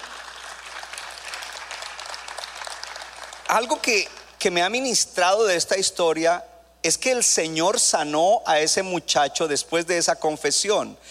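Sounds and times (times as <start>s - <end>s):
audience applause: 0.0s - 4.0s
speech: 3.5s - 11.0s.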